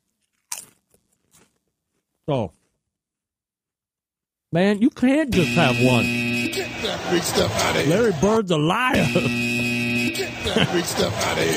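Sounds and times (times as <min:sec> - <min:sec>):
potato chip being bitten and chewed: 0:00.0 - 0:01.7
speech: 0:02.3 - 0:02.6, 0:04.5 - 0:09.5, 0:10.2 - 0:11.5
laughter: 0:05.4 - 0:11.5.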